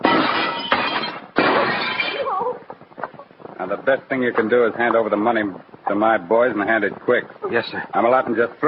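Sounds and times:
door glass being smashed in: 0:00.0 - 0:02.3
speech: 0:03.7 - 0:08.6.

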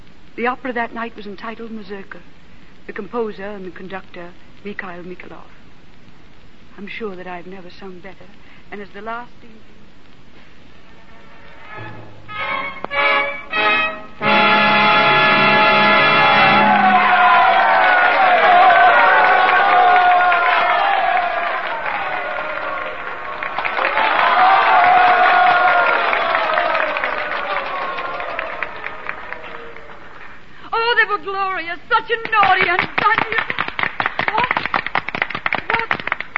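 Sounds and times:
speech: 0:00.4 - 0:05.6, 0:06.8 - 0:09.8
opera audience applause and cheering: 0:12.3 - 0:30.6, 0:32.3 - 0:36.3.

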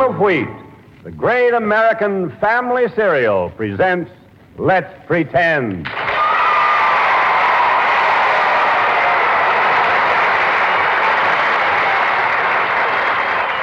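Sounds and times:
speech: 0:00.1 - 0:06.1
crowd applause and cheering: 0:05.9 - 0:13.6.

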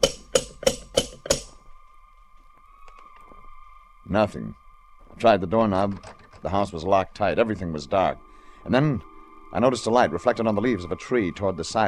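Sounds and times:
sharp metallic knocks from a bronze door knocker: 0:00.0 - 0:01.5
speech: 0:04.1 - 0:04.6, 0:05.2 - 0:11.8.

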